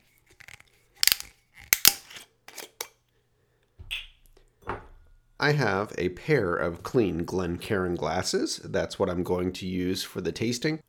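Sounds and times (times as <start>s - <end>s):
metal screw cap twisting off a spirits bottle: 0.0s - 2.9s
speech: 5.4s - 10.8s.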